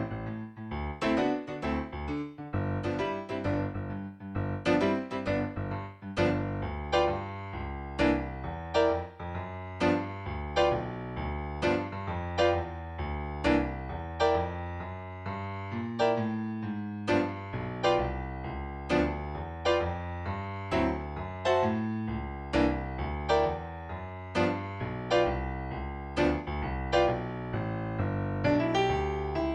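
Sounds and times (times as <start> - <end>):
blues piano track: 0.0 - 29.5.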